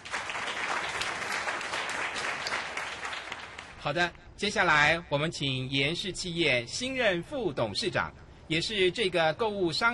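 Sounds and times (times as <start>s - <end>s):
crowd clapping: 0.0s - 3.8s
speech: 3.8s - 9.9s.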